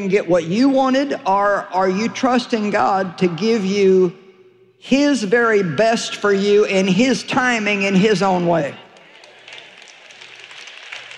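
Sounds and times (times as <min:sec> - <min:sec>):
speech: 0:00.0 - 0:04.2, 0:04.8 - 0:08.8
audience clapping: 0:08.9 - 0:11.1.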